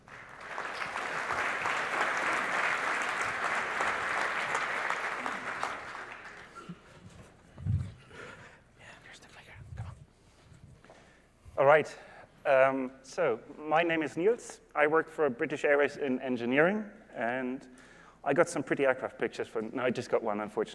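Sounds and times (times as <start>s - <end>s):
audience applause at a conference session welcoming the next speaker: 0.0s - 6.8s
speech: 11.6s - 20.7s.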